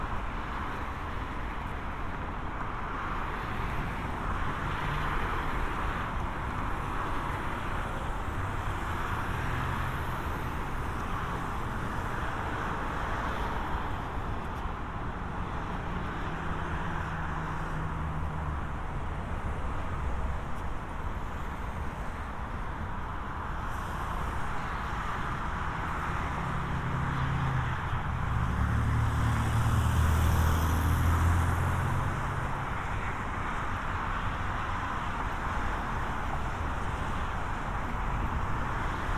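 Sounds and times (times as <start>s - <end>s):
heavier vehicles passing: 0.0s - 39.1s
road traffic in San Diego toward Golden Hill: 0.0s - 39.1s.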